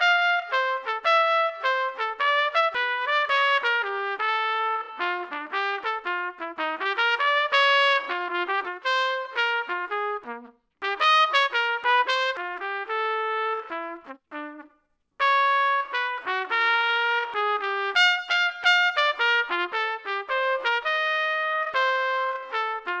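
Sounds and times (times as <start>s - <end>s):
trumpet: 0.0s - 22.9s.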